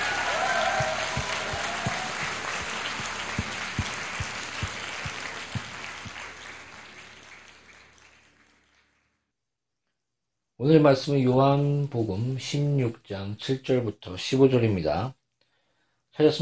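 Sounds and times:
church congregation applauding in worship: 0.0s - 9.2s
speech: 10.6s - 15.2s, 16.2s - 16.4s.

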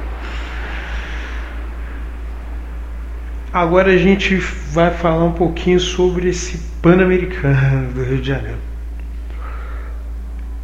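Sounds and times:
airplane flying overhead: 0.0s - 10.6s
speech: 3.6s - 8.7s.

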